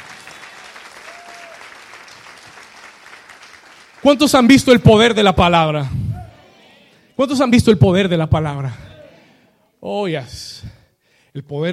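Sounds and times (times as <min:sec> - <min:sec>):
audience applause: 0:00.0 - 0:05.3
speech: 0:04.0 - 0:06.0, 0:07.2 - 0:08.9, 0:09.8 - 0:10.7, 0:11.4 - 0:11.7.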